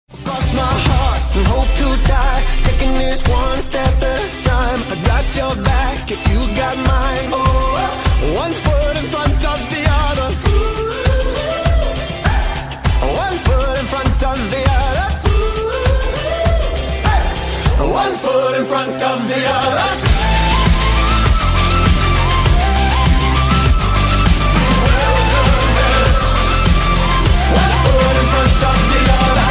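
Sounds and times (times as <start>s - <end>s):
indie rock music: 0.1s - 29.5s.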